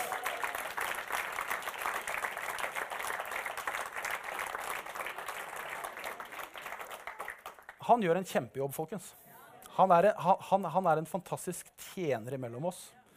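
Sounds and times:
audience applause: 0.0s - 7.8s
speech: 7.9s - 9.2s, 9.8s - 13.0s.

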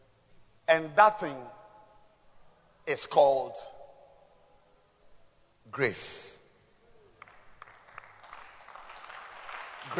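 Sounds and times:
speech: 0.7s - 1.6s, 2.9s - 3.7s, 5.7s - 6.4s
crowd clapping: 7.2s - 9.9s.

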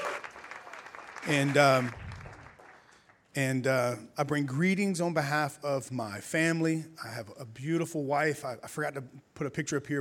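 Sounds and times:
audience clapping hands: 0.0s - 3.3s
speech: 1.2s - 2.0s, 3.4s - 10.0s.

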